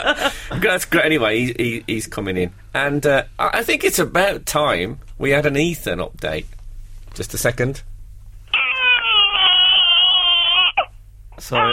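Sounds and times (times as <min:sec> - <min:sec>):
speech: 0:00.0 - 0:07.9, 0:11.4 - 0:11.7
baby crying in the street: 0:08.5 - 0:11.7.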